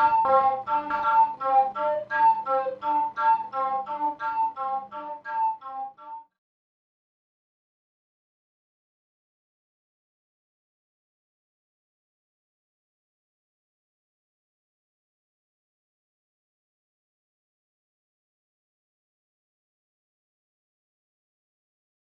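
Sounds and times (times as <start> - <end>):
tribal flute flicker: 0.0 - 6.4.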